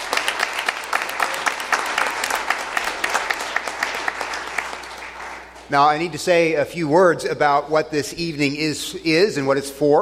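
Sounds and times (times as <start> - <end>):
audience applause: 0.0 - 5.7
speech: 5.7 - 10.0.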